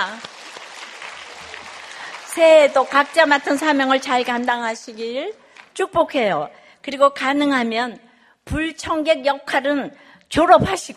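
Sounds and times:
church congregation clapping during a New Year service: 0:00.0 - 0:05.8
speech: 0:02.4 - 0:10.9.

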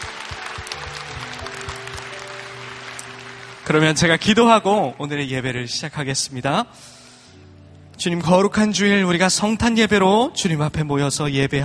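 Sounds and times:
audience applause: 0:00.0 - 0:04.7
speech: 0:03.7 - 0:07.0, 0:08.0 - 0:11.6.

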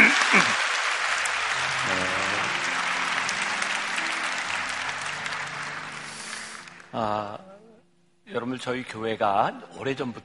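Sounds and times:
audience applauding: 0:00.0 - 0:07.2
speech: 0:08.5 - 0:10.2.

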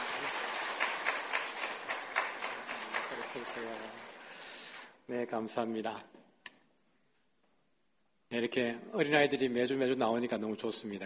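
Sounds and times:
audience applause: 0:00.0 - 0:04.8
speech: 0:03.4 - 0:04.0, 0:05.1 - 0:06.2, 0:08.3 - 0:11.0.

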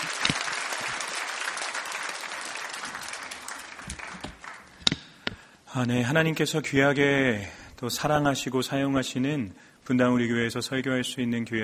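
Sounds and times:
crowd clapping: 0:00.0 - 0:05.2
speech: 0:05.8 - 0:11.6.

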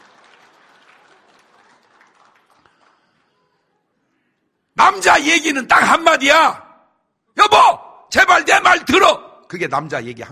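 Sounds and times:
audience clapping: 0:00.0 - 0:03.7
speech: 0:04.9 - 0:06.6, 0:07.6 - 0:10.3.

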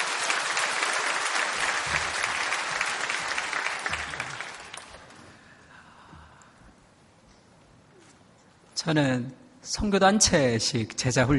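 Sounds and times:
audience applause: 0:00.0 - 0:05.3
speech: 0:08.8 - 0:11.3.

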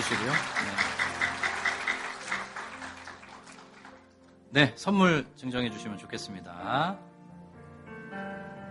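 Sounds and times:
speech: 0:00.0 - 0:00.9, 0:04.5 - 0:07.1
audience applause: 0:00.0 - 0:04.2.

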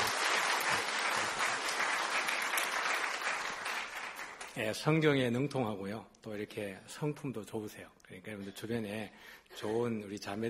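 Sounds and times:
audience applauding in welcome: 0:00.0 - 0:04.6
speech: 0:04.6 - 0:10.4.

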